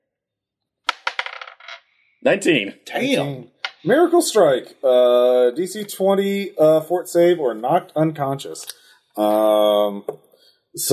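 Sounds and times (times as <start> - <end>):
d20 die rolling on a hard table: 0.9 - 1.8
speech: 2.2 - 10.9.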